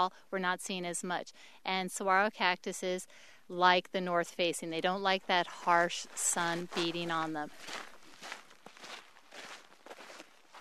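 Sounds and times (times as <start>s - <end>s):
speech: 0.0s - 8.4s
crunchy footsteps on a desert hiking trail: 5.2s - 10.6s.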